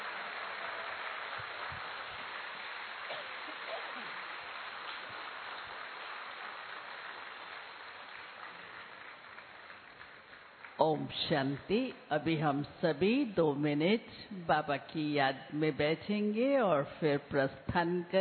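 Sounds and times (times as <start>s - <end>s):
crowd applause: 0.0s - 10.8s
speech: 10.8s - 18.1s.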